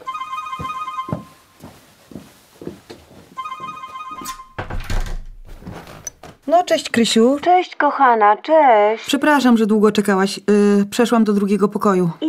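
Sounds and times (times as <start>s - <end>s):
mobile phone ringing: 0.0s - 1.6s, 3.4s - 4.6s
speech: 6.5s - 12.2s.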